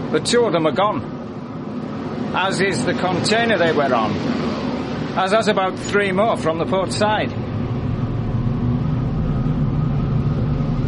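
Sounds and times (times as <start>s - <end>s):
ship engines restarting and rumbling: 0.0s - 10.8s
speech: 0.1s - 1.2s, 2.3s - 4.6s, 5.2s - 7.4s.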